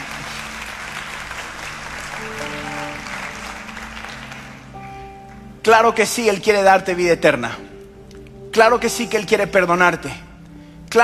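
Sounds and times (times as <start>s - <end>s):
audience applauding: 0.0s - 5.6s
sustained organ or keyboard tones: 0.0s - 11.0s
speech: 5.7s - 7.7s, 8.5s - 10.2s.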